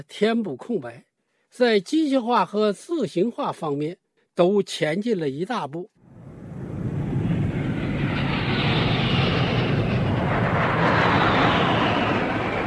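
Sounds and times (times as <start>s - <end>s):
speech: 0.0s - 5.9s
military jet aircraft formation flying overhead: 6.1s - 12.6s.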